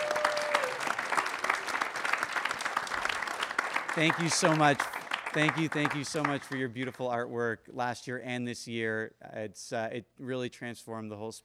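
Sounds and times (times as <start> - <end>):
audience applause: 0.0 - 6.6
speech: 4.0 - 11.4.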